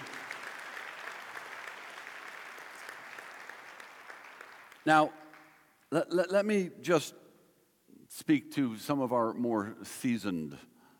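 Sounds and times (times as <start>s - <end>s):
audience applause: 0.0s - 5.6s
speech: 4.8s - 5.2s, 5.9s - 7.2s, 8.1s - 10.7s.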